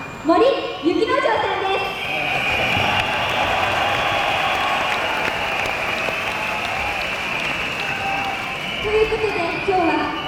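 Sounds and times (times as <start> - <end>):
speech: 0.3 - 1.5
concert audience clapping: 2.0 - 10.0.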